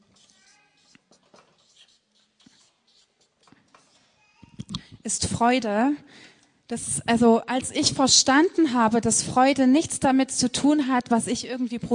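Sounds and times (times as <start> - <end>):
handwriting, a note being written: 0.0 - 4.1
speech: 5.0 - 11.9.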